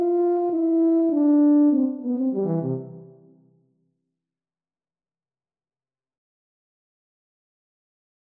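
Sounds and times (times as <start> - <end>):
tuba duet playing a waltz: 0.0 - 3.1.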